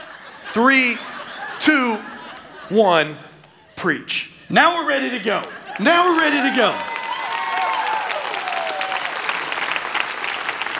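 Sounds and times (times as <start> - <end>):
laughter: 0.0 - 6.8
speech: 0.5 - 2.1, 2.7 - 6.9
audience clapping: 5.7 - 10.7
whoops and cheers: 6.3 - 9.4.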